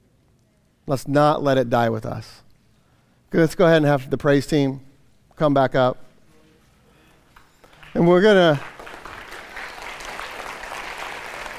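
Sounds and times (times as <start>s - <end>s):
speech: 0.9s - 2.4s, 3.3s - 6.1s, 8.0s - 8.7s
audience clapping: 7.7s - 11.5s.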